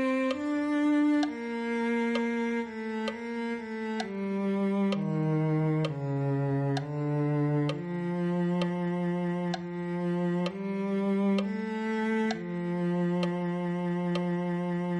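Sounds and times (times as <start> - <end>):
cello: 0.0 - 14.9.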